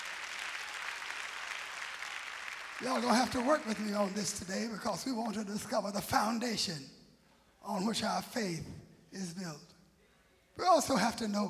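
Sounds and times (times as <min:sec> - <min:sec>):
audience clapping hands: 0:00.0 - 0:05.5
speech: 0:02.8 - 0:07.0, 0:07.6 - 0:09.7, 0:10.6 - 0:11.4.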